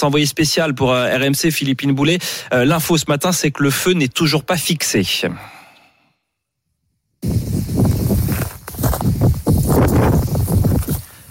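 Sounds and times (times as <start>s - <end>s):
speech: 0.0s - 5.6s
wind buffeting a reporter's microphone: 7.2s - 11.0s.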